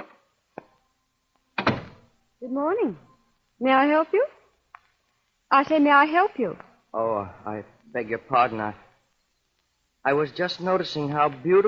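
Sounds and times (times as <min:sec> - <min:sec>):
door opening: 0:01.6 - 0:02.1
speech: 0:02.4 - 0:04.4, 0:05.5 - 0:08.8, 0:10.0 - 0:11.6.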